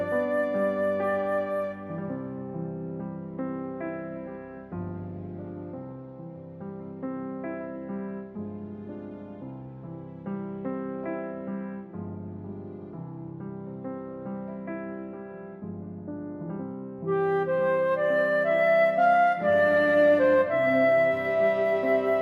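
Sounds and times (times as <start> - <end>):
flute playing reference note C: 0.0 - 2.2, 17.1 - 22.2.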